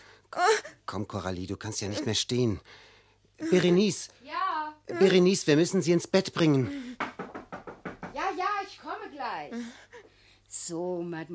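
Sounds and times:
speech: 0:00.3 - 0:07.0, 0:10.7 - 0:11.3
knocking at a door in a German radio play: 0:07.0 - 0:08.4.

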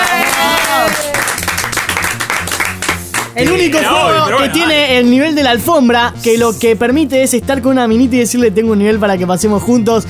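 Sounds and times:
applause: 0:00.0 - 0:03.6
speech: 0:03.4 - 0:10.0.

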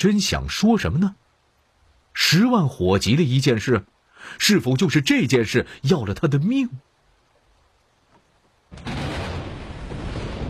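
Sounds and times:
speech: 0:00.0 - 0:01.2, 0:02.2 - 0:06.9
lightning crack: 0:08.7 - 0:10.4
thunder rumbling: 0:08.7 - 0:10.4.

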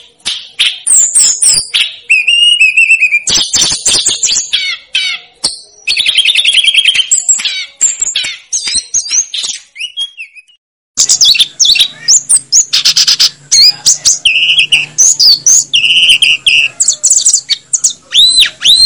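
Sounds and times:
snowy-browed flycatcher singing a medley of chips and whistles: 0:00.0 - 0:18.8.

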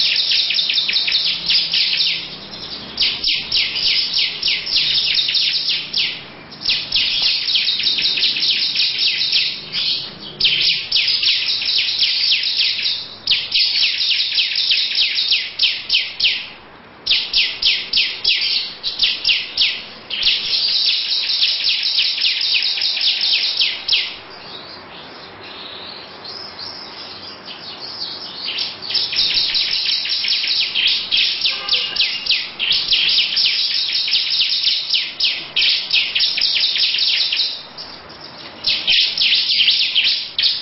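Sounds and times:
lovebird chattering song: 0:00.0 - 0:40.5.

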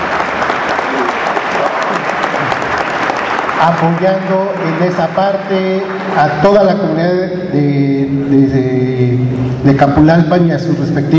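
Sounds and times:
audience applause at a community gathering in Capulálpam, Oaxaca, thanking kitchen helpers: 0:00.0 - 0:06.6
speech: 0:03.6 - 0:11.1.

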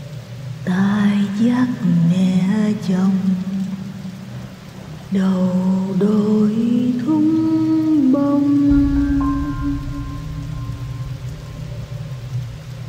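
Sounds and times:
rain falling: 0:00.0 - 0:12.8
speech: 0:01.4 - 0:03.5, 0:05.1 - 0:07.4
distant thunder: 0:08.7 - 0:12.8.

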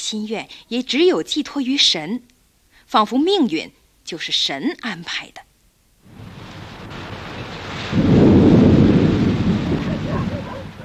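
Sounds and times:
speech: 0:00.1 - 0:02.3, 0:02.9 - 0:05.5
rain at night: 0:06.0 - 0:10.8
thunder at night: 0:06.0 - 0:10.8.

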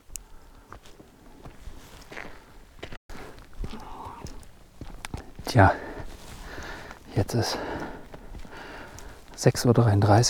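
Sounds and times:
footsteps on a hiking trail from Torfhaus toward the Brocken: 0:00.0 - 0:10.2
steady hiss: 0:03.2 - 0:10.2
speech: 0:05.5 - 0:05.8, 0:07.2 - 0:07.8, 0:09.4 - 0:10.2.

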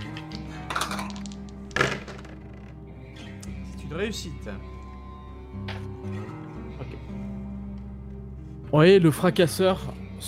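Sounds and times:
dice clattering across a hard tabletop: 0:00.0 - 0:02.7
speech: 0:03.9 - 0:04.8, 0:08.7 - 0:10.2.

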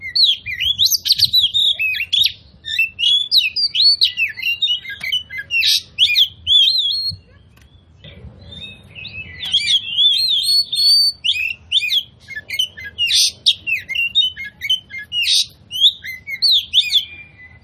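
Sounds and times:
Oriental magpie-robin singing: 0:00.0 - 0:17.6.

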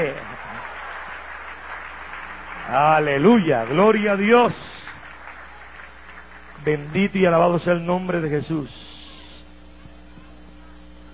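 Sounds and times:
congregation clapping during a church service: 0:00.0 - 0:09.3
speech: 0:02.7 - 0:04.8, 0:06.6 - 0:08.9.

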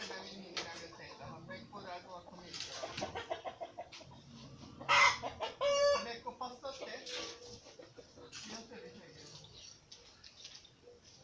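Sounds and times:
rooster clucking and crowing: 0:02.8 - 0:06.2.

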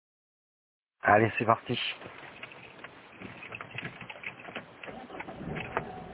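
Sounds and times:
speech: 0:01.1 - 0:02.2
car engine and road rumble while driving: 0:02.0 - 0:06.1
faint ticks and rattles: 0:02.0 - 0:06.1.

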